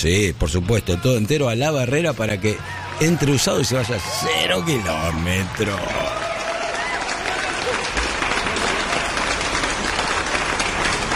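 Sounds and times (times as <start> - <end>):
speech: 0.0 - 6.2
crowd applause: 2.4 - 11.1.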